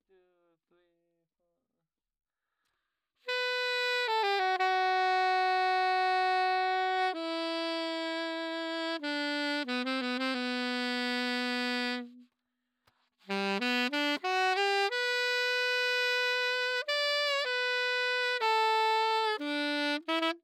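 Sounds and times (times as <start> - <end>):
saxophone: 3.2 - 12.4, 13.2 - 20.4.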